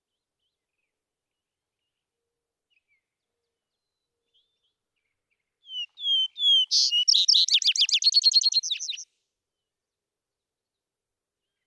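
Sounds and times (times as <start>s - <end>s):
Vesper sparrow song: 5.7s - 9.1s.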